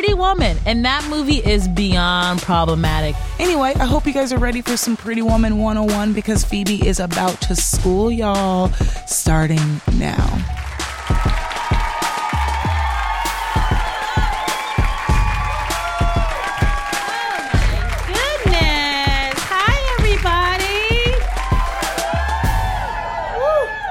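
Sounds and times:
speech: 0.0 - 11.4
live audience clapping and cheering: 10.3 - 23.8.

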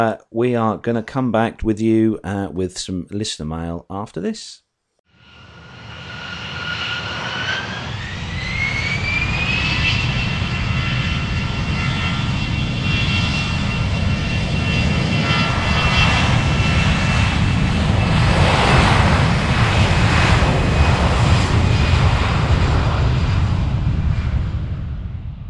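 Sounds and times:
speech: 0.0 - 4.6
BAC One-Eleven jet airliner engines spooling up: 5.2 - 25.1.

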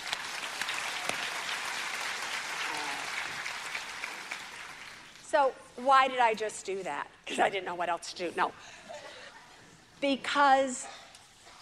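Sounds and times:
audience applause: 0.0 - 5.2
speech: 5.4 - 8.8, 10.0 - 11.0.

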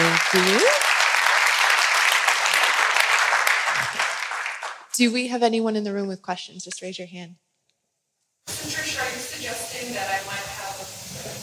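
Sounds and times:
audience applause: 0.0 - 4.9
speech: 0.3 - 0.8, 5.0 - 7.4.

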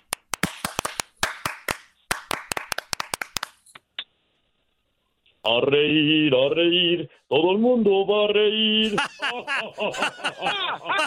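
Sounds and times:
people clapping: 0.0 - 3.7
speech: 5.5 - 11.0
laughter: 8.8 - 11.0.

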